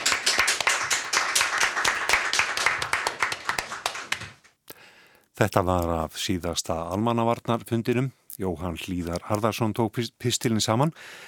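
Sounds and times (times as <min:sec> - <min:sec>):
audience clapping: 0:00.0 - 0:04.5
speech: 0:05.4 - 0:11.2.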